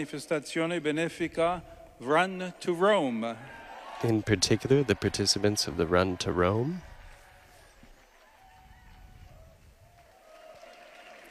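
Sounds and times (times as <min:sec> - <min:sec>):
speech: 0:00.0 - 0:06.9
crowd applauding in a square: 0:03.4 - 0:11.2.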